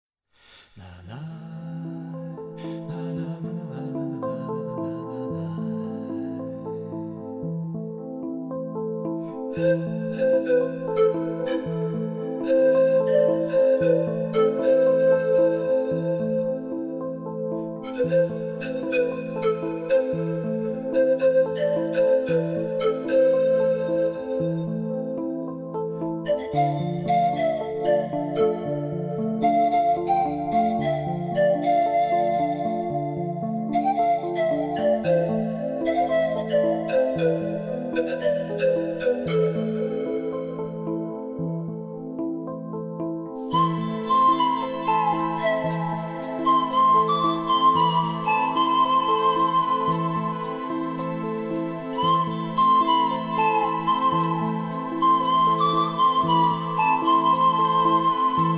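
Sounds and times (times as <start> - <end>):
lonely flute: 0.8 - 58.5.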